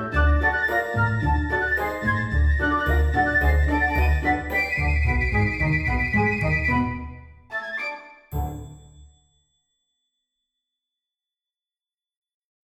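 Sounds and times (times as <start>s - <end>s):
flutes playing: 0.0s - 8.9s.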